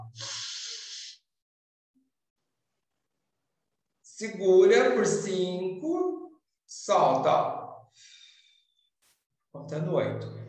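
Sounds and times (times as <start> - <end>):
person breathing in deeply through the nose: 0.2 - 1.2
speech: 4.2 - 8.1, 9.6 - 10.4.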